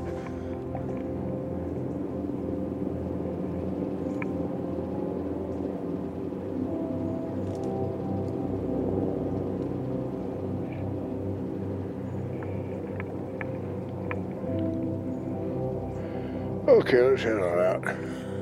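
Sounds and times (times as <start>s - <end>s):
helicopter flying overhead: 0.0s - 18.4s
speech: 16.8s - 18.2s.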